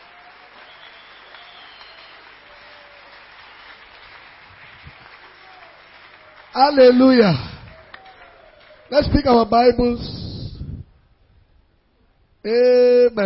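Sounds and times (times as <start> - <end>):
audience clapping: 0.0 - 9.8
speech: 6.6 - 7.5, 9.0 - 10.2, 12.4 - 13.2.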